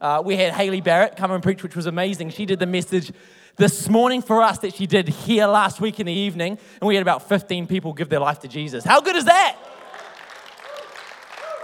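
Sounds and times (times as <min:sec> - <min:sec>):
speech: 0:00.0 - 0:09.8
audience applause: 0:09.5 - 0:11.6
person whooping: 0:10.6 - 0:11.6.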